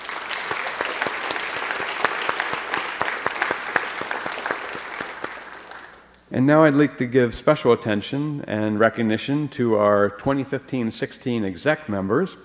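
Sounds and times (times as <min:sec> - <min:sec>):
audience applause: 0:00.0 - 0:06.2
speech: 0:06.3 - 0:12.4.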